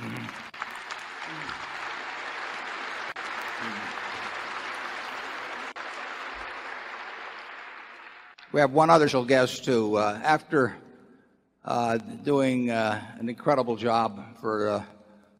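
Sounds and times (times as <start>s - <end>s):
applause from a large audience: 0.0s - 8.4s
speech: 8.5s - 10.8s, 11.6s - 15.0s.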